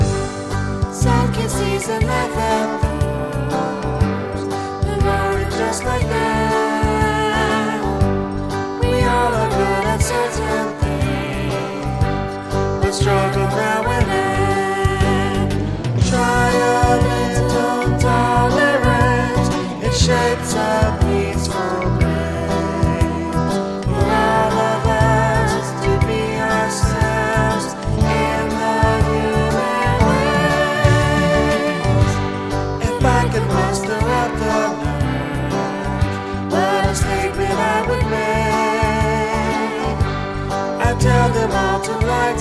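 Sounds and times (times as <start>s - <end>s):
vocals: 0.1s - 42.3s.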